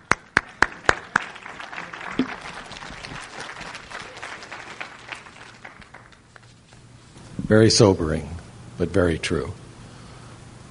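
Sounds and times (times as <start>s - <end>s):
audience clapping: 0.0s - 6.8s
speech: 7.5s - 9.6s.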